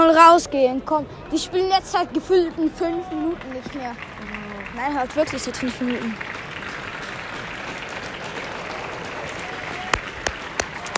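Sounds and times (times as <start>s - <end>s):
speech: 0.1s - 6.4s
stadium crowd clapping: 2.6s - 10.9s.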